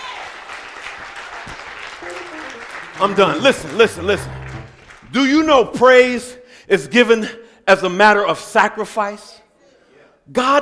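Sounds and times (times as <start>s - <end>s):
audience clapping: 0.0s - 5.5s
speech: 3.0s - 4.4s, 5.1s - 9.4s, 10.3s - 10.6s.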